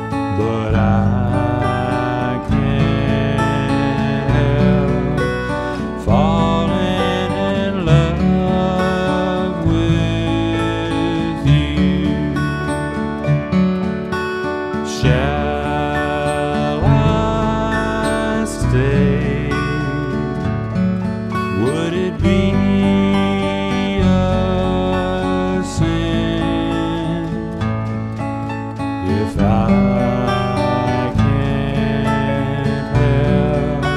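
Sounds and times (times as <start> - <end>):
fast pop song: 0.0 - 33.9.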